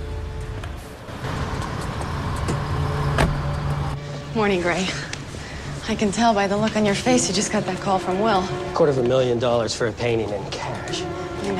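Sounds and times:
SUV engine and road rumble: 0.0s - 5.4s
speech: 4.4s - 5.1s, 5.9s - 11.5s.

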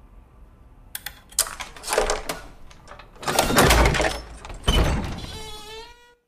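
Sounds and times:
key turning in the lock of an attic door: 1.0s - 4.6s
attic door creaking open: 1.4s - 6.1s.

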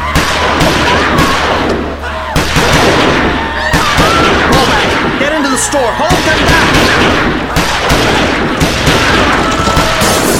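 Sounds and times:
gunfire into a crowd: 0.0s - 10.3s
indistinct voices: 0.0s - 10.3s
thick constant roar of noise: 0.0s - 10.3s.

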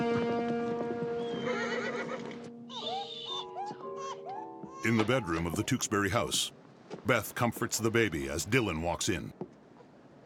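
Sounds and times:
horses' hooves clip-clopping as they are ridden away: 0.0s - 2.6s, 4.8s - 9.9s
horses whinnying and neighing: 1.1s - 4.2s
speech: 4.8s - 9.4s.

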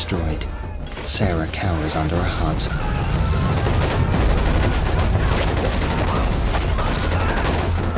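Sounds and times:
speech: 0.1s - 4.0s
gunfire as an army storms a village: 2.8s - 7.9s.

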